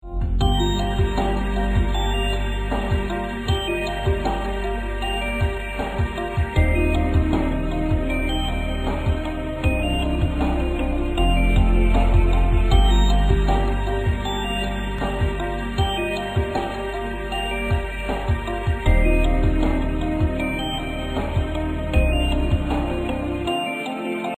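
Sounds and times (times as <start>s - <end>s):
Apple ringtone: 0.4s - 24.3s.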